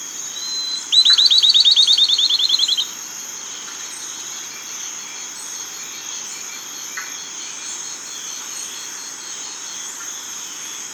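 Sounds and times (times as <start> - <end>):
steady high insect hiss: 0.0 - 10.9
bird buzzy trill: 0.8 - 2.9.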